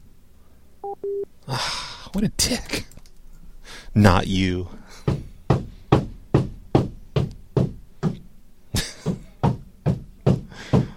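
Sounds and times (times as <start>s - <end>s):
speech: 0.8s - 3.0s, 3.7s - 5.1s
hammering: 5.0s - 8.2s, 8.8s - 10.9s.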